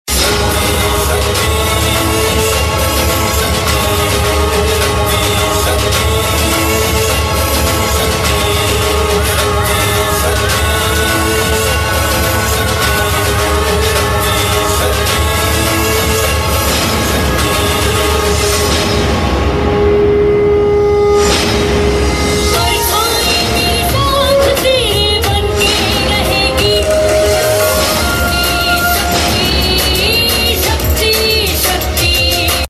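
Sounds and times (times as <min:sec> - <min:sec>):
background music tune: 0:00.1 - 0:32.6.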